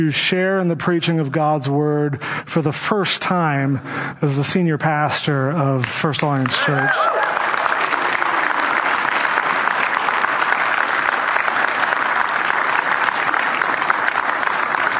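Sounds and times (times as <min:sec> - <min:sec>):
speech: 0:00.0 - 0:07.4
audience applause in church: 0:06.4 - 0:14.9.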